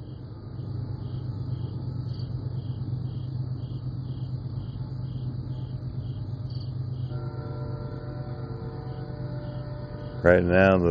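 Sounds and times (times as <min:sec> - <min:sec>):
train rolling past: 0:00.0 - 0:10.8
speech: 0:10.3 - 0:10.8.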